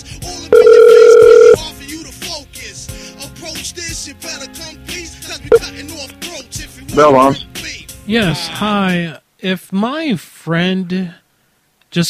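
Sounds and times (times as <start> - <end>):
phone ringback tone of a call to a bail bonds office: 0.5 - 1.6
speech: 7.0 - 7.5, 8.1 - 11.2.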